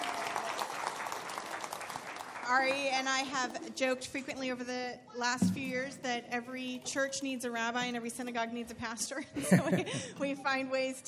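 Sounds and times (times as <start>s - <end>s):
audience applause: 0.0s - 2.8s
speech: 2.5s - 11.0s
laughter: 9.2s - 10.4s.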